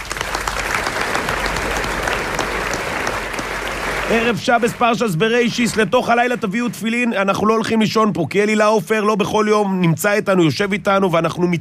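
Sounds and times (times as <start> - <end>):
audience applause: 0.0 - 7.0
speech: 4.1 - 11.6.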